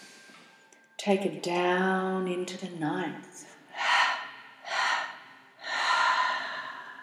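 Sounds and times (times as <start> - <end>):
speech: 1.0 - 3.5
deep breaths through the nose during a guided breathing exercise: 3.7 - 7.0.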